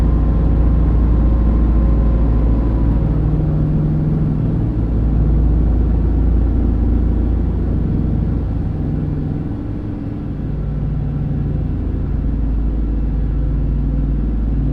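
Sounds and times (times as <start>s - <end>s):
Lockheed L-1049 Super Constellation taking off heard from the interior: 0.0s - 14.7s.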